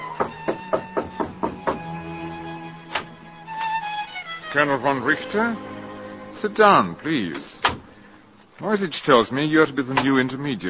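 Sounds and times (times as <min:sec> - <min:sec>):
knocking on a door: 0:00.2 - 0:01.9
speech: 0:04.6 - 0:05.7, 0:06.4 - 0:07.8, 0:08.6 - 0:10.6.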